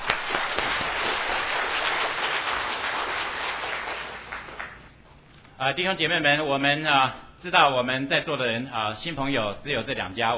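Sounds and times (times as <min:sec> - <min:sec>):
audience applauding to welcome newcomers: 0:00.0 - 0:04.9
speech: 0:05.6 - 0:10.3.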